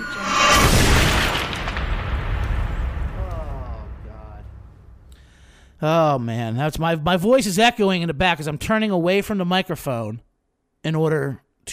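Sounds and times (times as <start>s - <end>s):
bomb explosion sound effect: 0.0s - 5.7s
speech: 5.8s - 11.7s.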